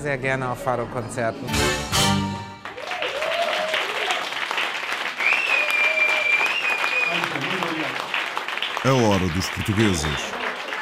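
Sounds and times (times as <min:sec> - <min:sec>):
speech: 0:00.0 - 0:02.4, 0:07.1 - 0:08.1, 0:08.8 - 0:10.4
final sung or played fado phrase: 0:01.5 - 0:02.7
audience applause after fado performance: 0:02.6 - 0:10.7
cheers and whistles: 0:02.8 - 0:04.2, 0:05.2 - 0:07.5.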